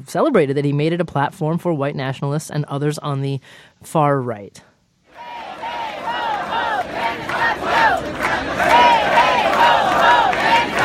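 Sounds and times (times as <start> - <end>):
speech: 0.0 - 4.7
crowd chanting at street protests against the president-elect: 5.1 - 10.8.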